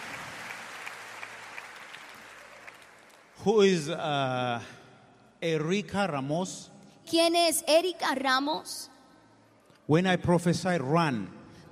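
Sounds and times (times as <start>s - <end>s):
church congregation clapping hands: 0.0s - 3.9s
speech: 3.4s - 4.8s, 5.4s - 8.9s, 9.9s - 11.4s.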